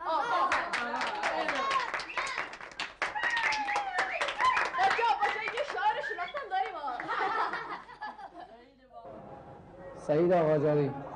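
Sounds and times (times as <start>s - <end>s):
children clapping in a classroom: 0.4s - 7.9s
laughter: 5.6s - 8.6s
speech: 10.1s - 11.1s.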